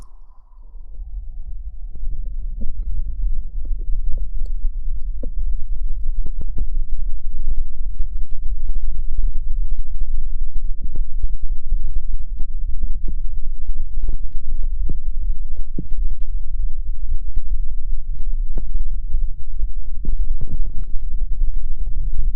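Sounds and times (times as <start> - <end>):
thin tone: 0.0 - 0.8
muffled underwater rumble with ears covered while diving: 0.0 - 22.3.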